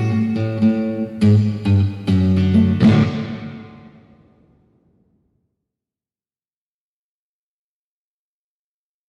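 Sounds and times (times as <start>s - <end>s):
old rhythm music: 0.0s - 4.2s.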